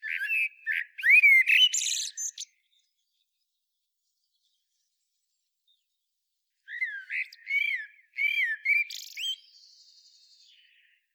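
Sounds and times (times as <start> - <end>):
Eurasian blackbird Turdus merula singing: 0.0 - 3.2, 6.7 - 11.1.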